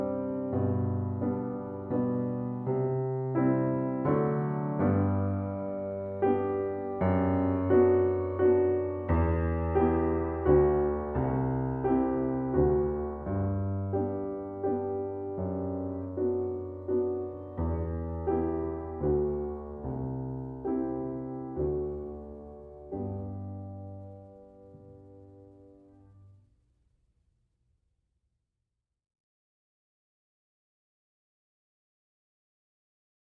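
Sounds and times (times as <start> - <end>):
piano waltz: 0.0 - 26.4.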